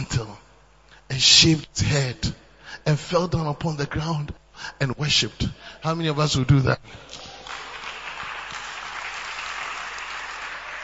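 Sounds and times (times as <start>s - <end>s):
speech: 1.1s - 7.4s
crowd clapping: 7.0s - 10.8s.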